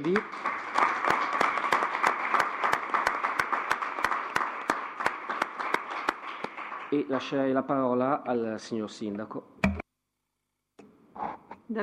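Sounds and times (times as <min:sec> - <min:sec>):
speech: 0:00.0 - 0:00.5, 0:06.9 - 0:09.5
audience applause: 0:00.0 - 0:07.5.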